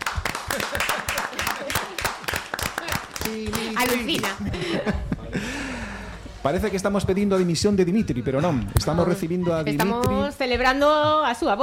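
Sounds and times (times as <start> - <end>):
audience applause: 0.0 - 4.4
laughter: 0.4 - 2.3, 3.5 - 6.1
speech: 3.3 - 5.5, 6.4 - 11.6.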